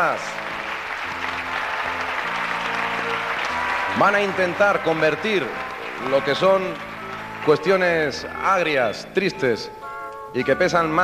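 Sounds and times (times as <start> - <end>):
speech: 0.0 - 0.6, 3.9 - 11.0
audience applause welcoming comedians: 0.0 - 8.5.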